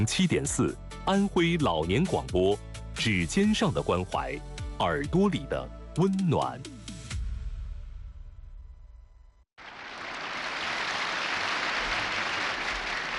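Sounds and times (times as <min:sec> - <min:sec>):
speech: 0:00.0 - 0:06.8
audience applauding warmly: 0:09.6 - 0:13.1.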